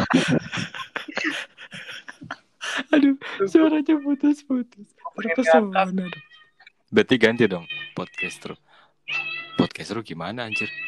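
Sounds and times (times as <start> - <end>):
laughter: 0.0 - 3.3
speech: 0.1 - 0.8, 3.4 - 6.3, 6.9 - 10.8
cat meowing: 5.5 - 6.6, 7.3 - 9.8, 10.5 - 10.8.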